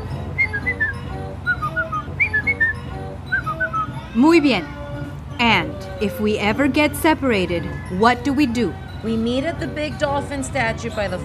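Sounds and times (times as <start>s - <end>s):
person whistling a family signal whistle: 0.4s - 4.0s
speech: 4.2s - 4.8s, 5.4s - 11.2s.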